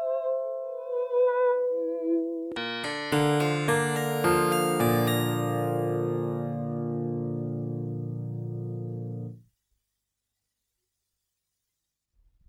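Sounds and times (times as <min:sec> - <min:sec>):
interlude music: 0:00.0 - 0:09.4.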